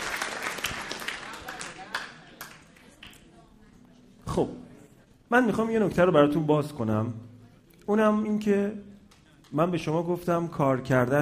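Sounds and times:
audience clapping at a talk: 0.0s - 3.1s
speech: 4.4s - 4.6s, 5.3s - 7.3s, 7.9s - 8.9s, 9.5s - 11.2s.

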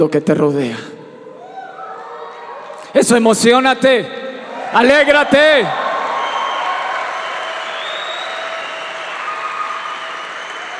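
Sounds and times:
speech: 0.0s - 1.0s, 3.0s - 5.8s
audience applause: 4.6s - 10.7s.

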